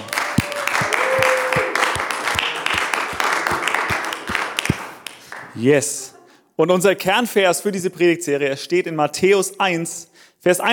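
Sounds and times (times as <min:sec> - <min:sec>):
audience applause: 0:00.0 - 0:05.6
speech: 0:05.6 - 0:10.7.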